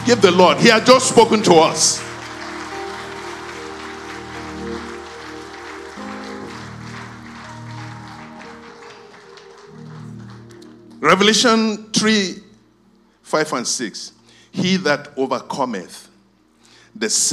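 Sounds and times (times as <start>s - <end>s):
audience clapping: 0.0s - 11.6s
speech: 0.1s - 2.1s, 11.0s - 12.4s, 13.3s - 16.1s, 17.0s - 17.3s.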